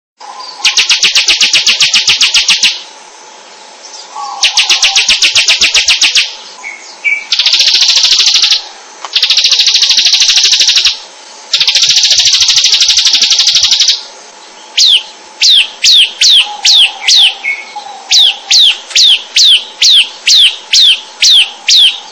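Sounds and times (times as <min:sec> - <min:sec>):
bird chirping: 0:00.2 - 0:02.8, 0:03.5 - 0:22.0.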